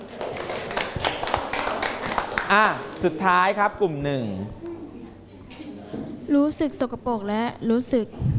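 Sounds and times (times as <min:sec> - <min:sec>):
students clapping for classmates after a group talk about litter at a temple: 0:00.0 - 0:03.2
speech: 0:02.5 - 0:04.7, 0:06.3 - 0:08.3.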